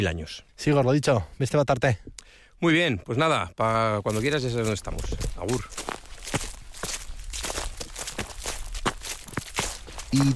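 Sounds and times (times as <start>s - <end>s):
speech: 0.0s - 6.4s, 10.1s - 10.3s
footsteps on fallen autumn leaves in oak woods: 3.9s - 10.3s.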